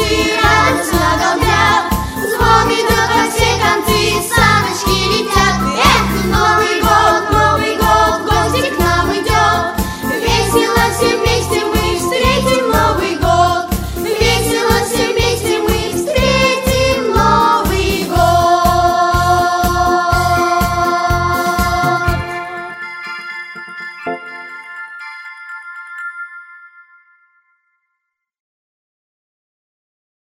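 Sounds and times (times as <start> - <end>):
children's choir singing: 0.0 - 22.8.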